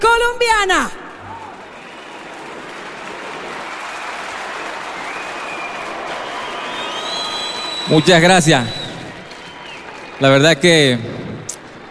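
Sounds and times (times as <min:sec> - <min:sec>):
speech: 0:00.4 - 0:01.0, 0:07.9 - 0:08.8, 0:10.2 - 0:11.2
loud applause: 0:00.9 - 0:11.8.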